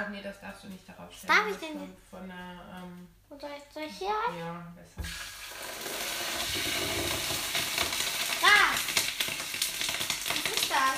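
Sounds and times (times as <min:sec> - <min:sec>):
speech: 0:00.0 - 0:08.0
water sizzling and steaming in a hot pan: 0:05.0 - 0:10.9.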